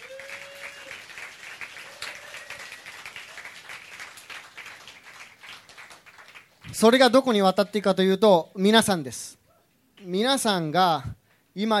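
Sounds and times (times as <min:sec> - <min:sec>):
audience applause: 0:00.0 - 0:06.7
speech: 0:06.7 - 0:09.4, 0:10.0 - 0:11.7.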